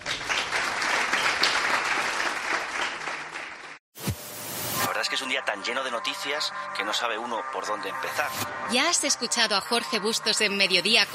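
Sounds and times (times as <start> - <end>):
audience applause: 0.0 - 3.8
speech: 5.2 - 11.1.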